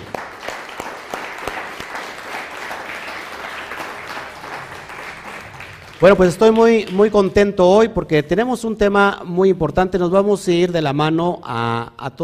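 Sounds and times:
audience applause: 0.0s - 7.3s
speech: 6.0s - 12.2s.

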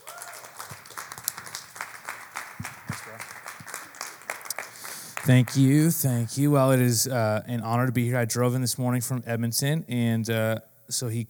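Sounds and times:
church congregation clapping to welcome a guest pastor: 0.0s - 6.2s
speech: 5.3s - 11.2s.

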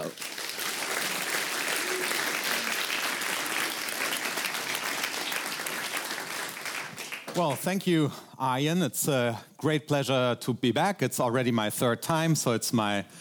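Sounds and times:
audience applause: 0.0s - 7.7s
speech: 7.4s - 13.2s.

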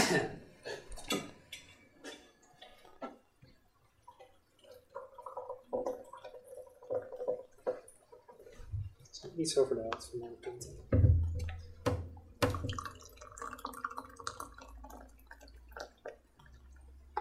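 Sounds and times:
speech: 0.1s - 0.4s, 9.4s - 11.0s
tea pouring into a cup: 3.9s - 8.7s, 12.4s - 17.1s.

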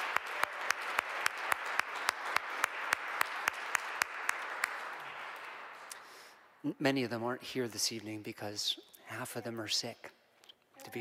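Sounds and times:
one sharp clapper clapping: 0.0s - 6.1s
audience applause: 0.0s - 6.2s
speech: 6.6s - 10.2s.

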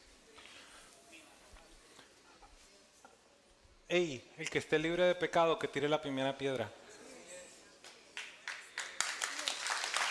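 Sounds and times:
speech: 3.9s - 6.8s
thin scattered applause from an audience: 7.8s - 10.0s.

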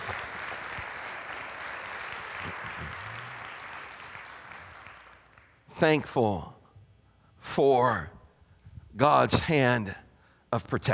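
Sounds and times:
audience applause: 0.0s - 5.6s
speech: 5.8s - 6.6s, 7.6s - 8.2s, 9.0s - 10.9s.

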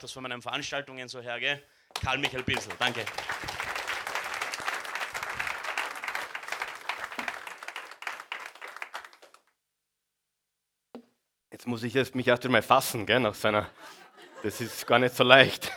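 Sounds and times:
speech: 0.0s - 3.6s, 11.6s - 15.7s
audience applause: 2.0s - 9.5s
laughter: 13.4s - 15.7s.

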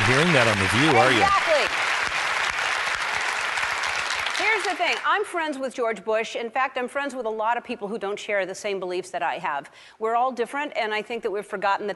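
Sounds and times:
audience applause: 0.0s - 5.0s
speech: 0.1s - 1.8s, 4.7s - 11.9s.

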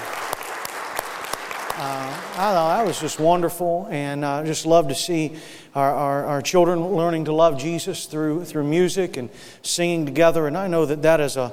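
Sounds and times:
audience applause: 0.0s - 3.4s
speech: 1.8s - 11.5s.

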